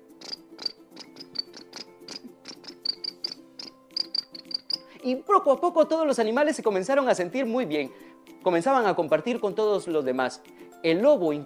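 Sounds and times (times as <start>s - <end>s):
crickets chirping: 0.2s - 4.9s
speech: 5.0s - 11.4s.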